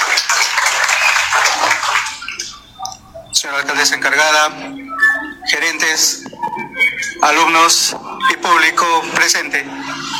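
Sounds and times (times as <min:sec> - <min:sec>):
audience applause: 0:00.0 - 0:02.5
speech: 0:03.5 - 0:06.3, 0:07.0 - 0:10.0.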